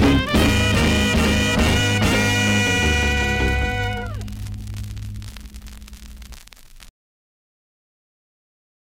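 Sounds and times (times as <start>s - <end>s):
record scratching: 0.4s - 6.9s.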